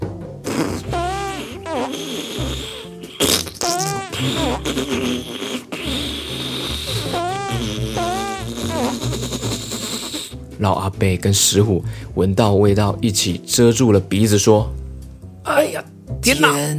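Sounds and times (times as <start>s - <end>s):
fart sound effect: 0.4s - 10.4s
speech: 0.6s - 1.0s, 10.6s - 14.8s, 15.7s - 16.7s.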